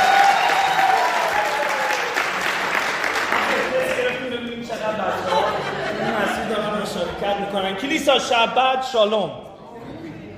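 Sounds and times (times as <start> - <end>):
Persian-speaking church congregation clapping: 0.0 - 4.7
laughter: 3.3 - 7.2
speech: 7.9 - 9.4.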